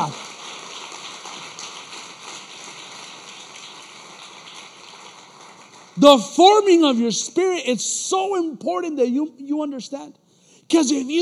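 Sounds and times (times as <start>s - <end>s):
audience applause: 0.0s - 6.0s
speech: 6.0s - 11.1s.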